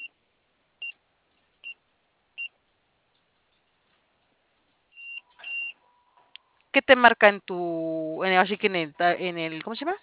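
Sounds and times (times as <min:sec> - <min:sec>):
security keypad beeps as a code is entered: 0:05.0 - 0:05.8
speech: 0:06.8 - 0:10.0.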